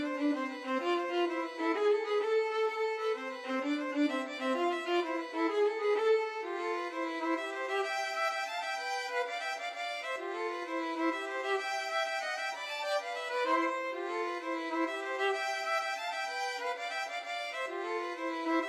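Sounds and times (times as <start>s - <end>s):
two violins playing a tarantella: 0.0s - 18.6s.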